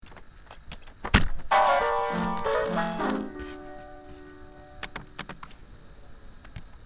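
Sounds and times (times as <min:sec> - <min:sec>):
keyboard: 0:01.5 - 0:05.5.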